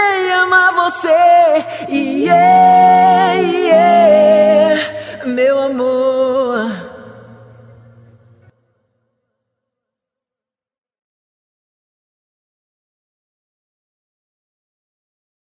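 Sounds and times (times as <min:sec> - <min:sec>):
a cappella trio singing: 0:00.0 - 0:07.9.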